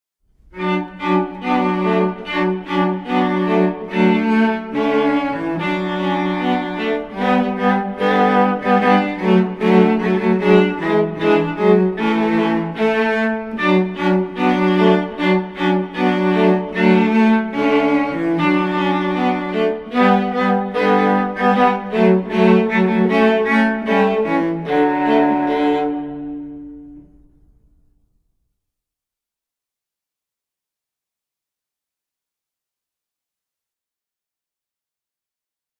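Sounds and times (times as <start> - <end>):
cello playing a Christmas tune: 0.4 - 27.5.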